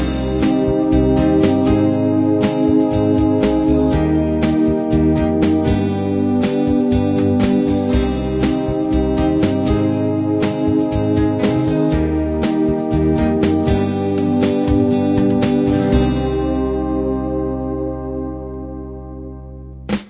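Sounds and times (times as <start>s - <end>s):
classic beat: 0.0s - 17.5s, 19.7s - 20.0s.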